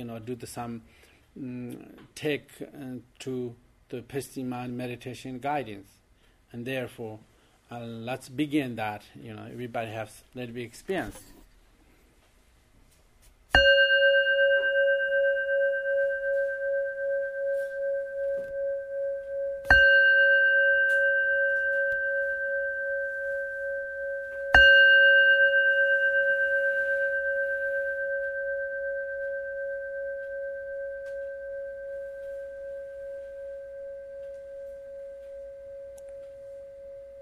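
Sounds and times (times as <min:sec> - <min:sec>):
speech: 0:00.0 - 0:11.3
meditation bell ringing: 0:13.6 - 0:37.2.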